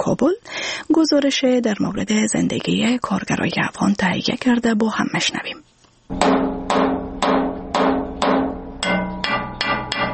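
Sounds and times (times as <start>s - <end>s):
speech: 0.1s - 6.4s
blacksmith's hammer striking metal in Kabul: 6.1s - 10.1s.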